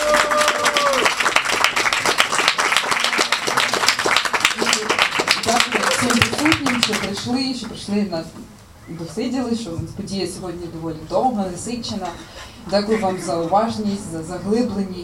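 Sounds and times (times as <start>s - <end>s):
loud audience applause: 0.0s - 7.3s
speech: 7.2s - 15.0s.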